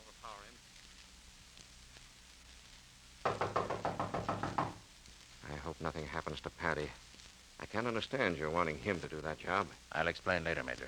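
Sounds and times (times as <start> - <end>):
knocking on a front door: 3.2 - 4.9
speech: 5.8 - 10.8.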